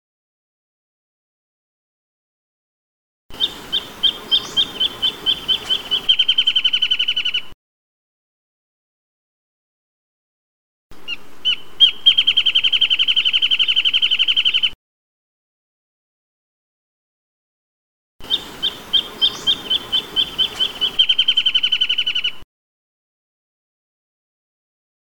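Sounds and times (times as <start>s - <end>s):
wrentit chirping: 3.3s - 7.6s, 11.0s - 14.8s, 18.2s - 22.4s.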